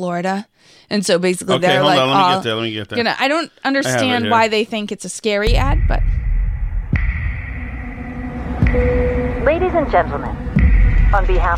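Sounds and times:
speech: 0.0s - 6.2s, 8.7s - 11.5s
laughter: 1.4s - 3.1s, 3.8s - 4.5s
heavy bass with cavernous echo in movie trailer: 5.5s - 11.5s.

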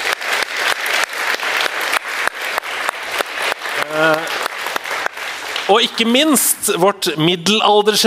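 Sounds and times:
audience applause: 0.0s - 6.4s
speech: 5.7s - 8.0s.

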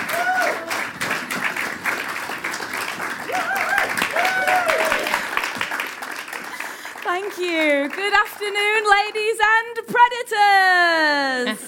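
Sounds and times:
whoops and cheers: 0.0s - 0.9s, 3.2s - 5.3s
crowd applauding: 0.0s - 9.6s
speech: 7.4s - 11.6s.

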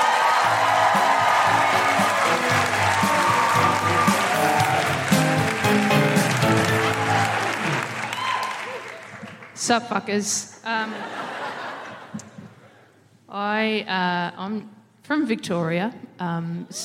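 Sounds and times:
audience clapping at a live feminist comedy show in Adelaide: 0.0s - 9.6s
speech: 9.7s - 11.2s, 13.4s - 16.8s
laughter: 10.8s - 12.5s.

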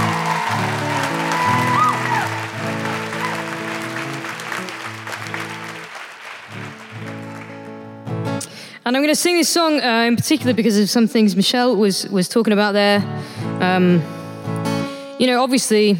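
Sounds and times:
audience applause: 0.0s - 8.1s
speech: 8.9s - 14.2s, 15.2s - 15.9s.

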